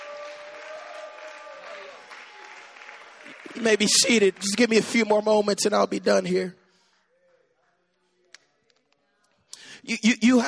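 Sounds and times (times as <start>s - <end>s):
audience clapping: 0.0s - 6.3s
speech: 3.5s - 6.6s, 9.9s - 10.4s.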